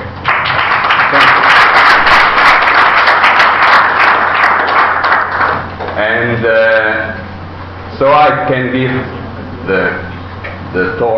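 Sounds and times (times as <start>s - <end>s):
audience applause: 0.2s - 6.0s
speech: 8.0s - 10.0s, 10.7s - 11.1s.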